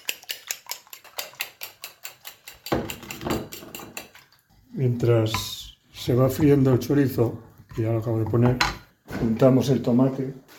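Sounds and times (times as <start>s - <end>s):
eggs beaten with a fork for an omelette: 0.0s - 4.6s
speech: 4.8s - 10.4s.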